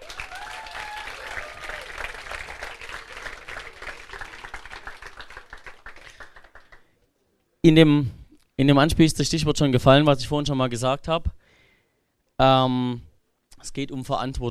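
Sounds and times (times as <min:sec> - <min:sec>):
audience applause: 0:00.0 - 0:06.9
speech: 0:07.6 - 0:11.4, 0:12.4 - 0:14.4.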